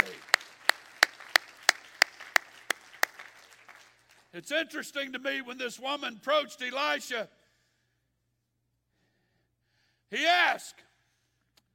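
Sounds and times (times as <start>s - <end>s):
audience clapping hands: 0.0s - 4.4s
speech: 4.4s - 7.4s, 10.1s - 10.9s.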